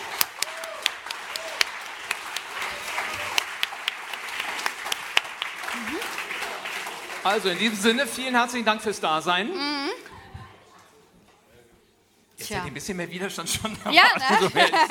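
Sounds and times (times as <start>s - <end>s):
audience applause: 0.0s - 8.4s
speech: 7.2s - 9.8s, 12.5s - 14.9s
laughter: 13.5s - 14.9s.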